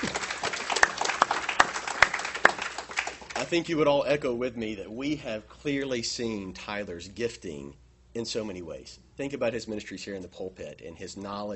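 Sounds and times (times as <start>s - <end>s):
audience clapping: 0.0s - 3.7s
speech: 3.5s - 11.5s.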